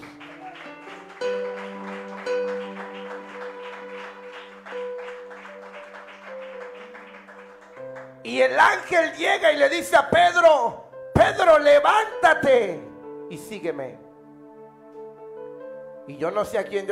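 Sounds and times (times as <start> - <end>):
audience clapping loudly: 0.0 - 9.2
speech: 8.3 - 14.0, 16.1 - 16.9.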